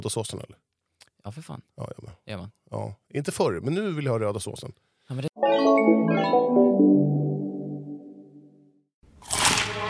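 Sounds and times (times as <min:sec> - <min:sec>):
speech: 0:00.0 - 0:07.3
fading melodic tone: 0:05.4 - 0:08.5
bite of a McDonald's McCrispy chicken burger: 0:09.2 - 0:09.7.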